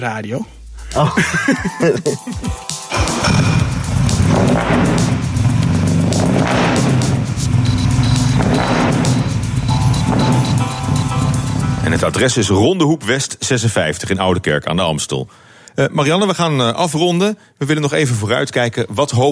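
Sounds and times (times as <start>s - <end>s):
speech: 0.0s - 3.5s, 11.9s - 19.2s
laughter: 1.0s - 3.6s
car engine turning over after a key turn and revving: 2.9s - 12.2s.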